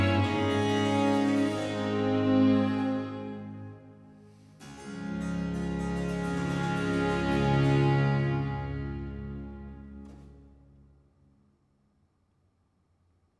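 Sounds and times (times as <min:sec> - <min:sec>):
concerto grosso in D major: 0:00.0 - 0:03.9, 0:04.6 - 0:10.4.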